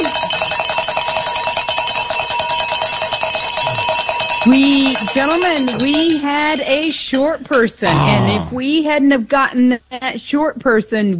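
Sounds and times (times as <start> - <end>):
signal or alarm bells ringing: 0.0 - 6.9
speech: 4.4 - 11.1.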